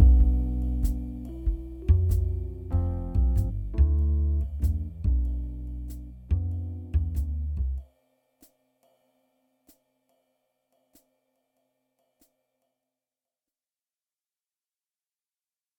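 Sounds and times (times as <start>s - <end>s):
ambient music: 0.0s - 7.5s.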